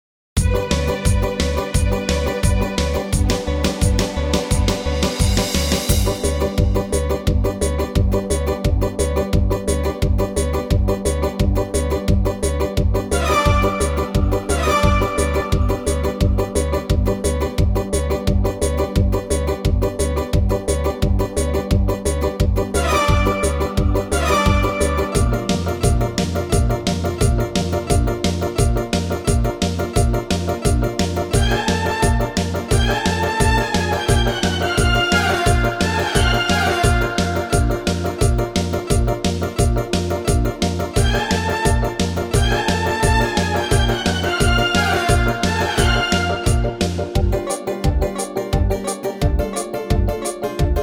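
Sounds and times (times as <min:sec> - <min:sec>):
modern piano backing track: 0:00.4 - 0:50.8.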